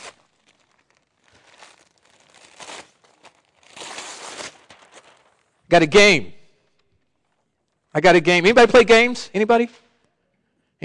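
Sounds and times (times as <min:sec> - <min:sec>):
wrapping paper crinkling and tearing as Christmas gifts are unwrapped: 0:00.0 - 0:05.7, 0:06.7 - 0:07.9
speech: 0:05.7 - 0:06.4, 0:08.0 - 0:09.8.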